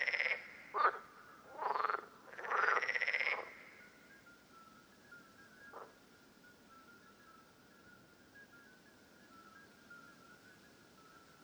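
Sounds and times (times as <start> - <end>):
parsley frogs croaking: 0.0 - 4.1, 5.6 - 6.0.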